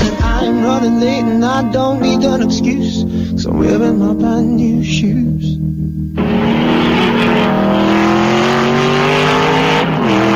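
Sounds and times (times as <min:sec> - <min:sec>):
speech: 0:00.6 - 0:06.8
race car engines roaring at a Grand Prix: 0:06.2 - 0:10.3.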